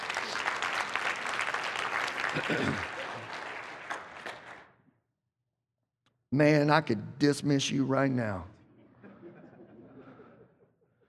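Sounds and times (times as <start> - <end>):
audience clapping: 0.0 - 4.8
laughter: 2.2 - 3.4, 8.8 - 10.7
speech: 2.3 - 3.0, 6.3 - 8.5.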